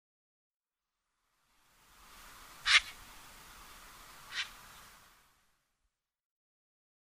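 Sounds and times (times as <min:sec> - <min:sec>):
solitary snipe harsh rasping calls: 0:02.6 - 0:03.0, 0:04.2 - 0:04.9.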